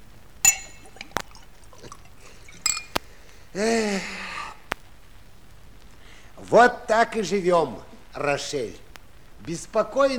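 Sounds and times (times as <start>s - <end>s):
wine glasses clinking: 0.4s - 3.0s
speech: 3.6s - 4.2s, 6.5s - 8.8s, 9.4s - 10.1s.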